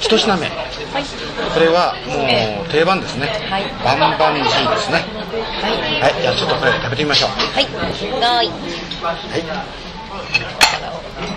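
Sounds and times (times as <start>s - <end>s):
speech: 0.1s - 11.3s
rice bowls clinking while serving food: 9.9s - 11.3s.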